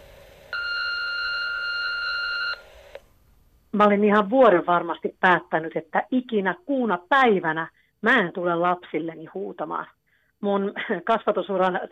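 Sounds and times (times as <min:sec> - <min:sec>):
answering machine beep tone: 0:00.6 - 0:02.6
speech: 0:03.8 - 0:11.8.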